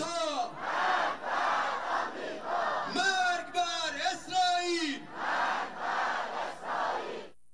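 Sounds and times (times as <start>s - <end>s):
crowd chanting at a rally: 0.2s - 3.5s, 4.1s - 7.3s
crowd cheering: 0.5s - 3.6s, 4.9s - 7.3s.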